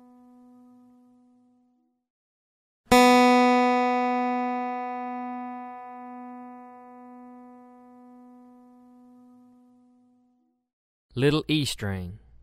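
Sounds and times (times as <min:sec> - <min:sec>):
guitar: 0:00.0 - 0:01.7, 0:02.9 - 0:10.5.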